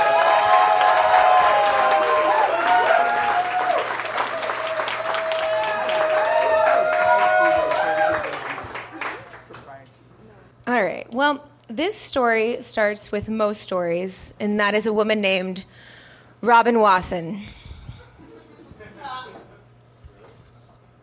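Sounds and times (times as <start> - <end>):
audience applause greeting a singer walking on stage at a storytelling show: 0.0 - 9.6
speech: 11.8 - 17.6.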